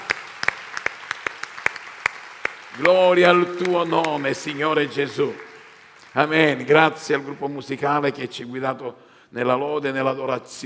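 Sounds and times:
sparse applause from a church congregation: 0.0s - 7.6s
speech: 2.8s - 5.5s, 6.1s - 10.6s.

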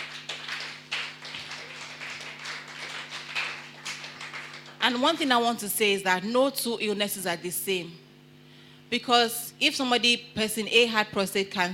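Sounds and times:
audience clapping: 0.0s - 5.0s
speech: 4.8s - 8.0s, 8.9s - 11.7s.

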